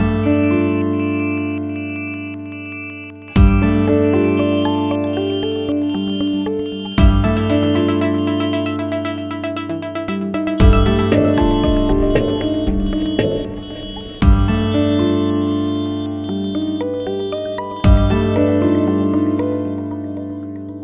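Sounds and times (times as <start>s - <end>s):
guitar piece: 0.1s - 20.6s.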